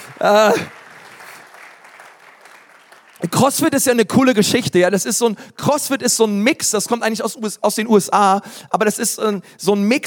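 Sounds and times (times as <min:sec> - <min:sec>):
audience clapping: 0:00.0 - 0:04.0
speech: 0:00.2 - 0:00.8, 0:03.2 - 0:10.0.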